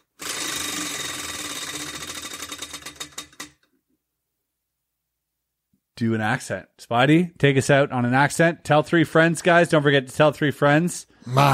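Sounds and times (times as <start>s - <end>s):
prize wheel spinning: 0.0s - 3.6s
speech: 6.0s - 11.5s.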